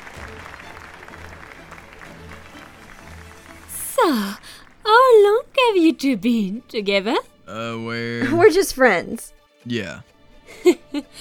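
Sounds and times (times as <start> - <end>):
applause: 0.0 - 4.8
speech: 4.0 - 4.4, 5.8 - 11.2.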